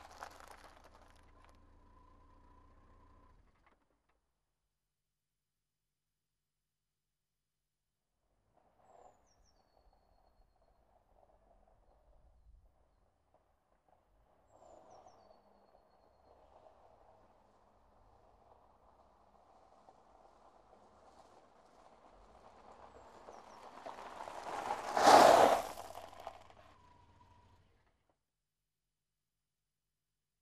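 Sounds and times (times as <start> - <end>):
car pulling up on wet gravel: 0.0 - 4.1, 10.6 - 27.8.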